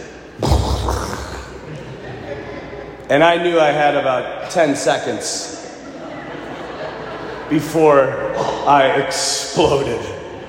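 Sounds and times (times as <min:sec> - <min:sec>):
voice imitating a stomach rumbling: 0:00.4 - 0:01.7
laughter: 0:00.4 - 0:03.1, 0:05.6 - 0:09.0
speech: 0:03.1 - 0:05.6, 0:07.5 - 0:10.2.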